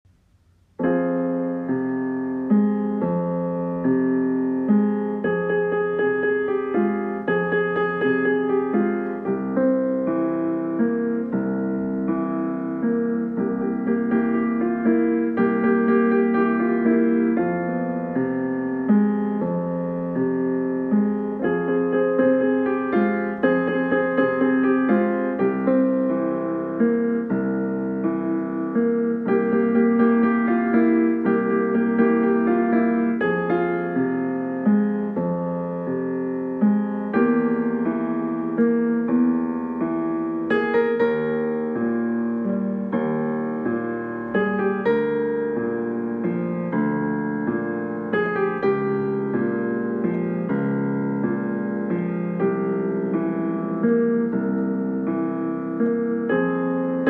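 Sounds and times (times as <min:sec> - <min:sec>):
piano accompaniment: 0:00.0 - 0:57.0.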